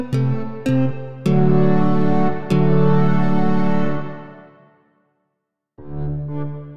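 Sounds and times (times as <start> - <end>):
fantasy game music: 0.2 - 4.6, 5.8 - 6.7.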